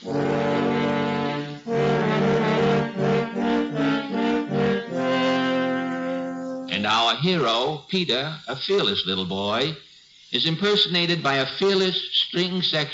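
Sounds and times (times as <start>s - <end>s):
three French horns playing menacing theme: 0.0s - 6.8s
speech: 7.1s - 12.9s.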